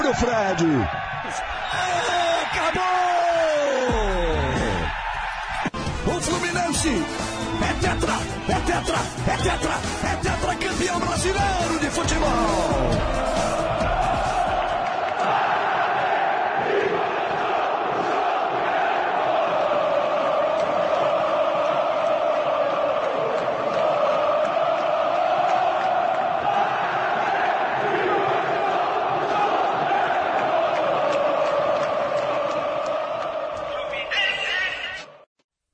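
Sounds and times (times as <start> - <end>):
stadium crowd of football fans cheering and chanting: 0.0 - 35.3
speech: 0.1 - 3.0, 6.2 - 13.7.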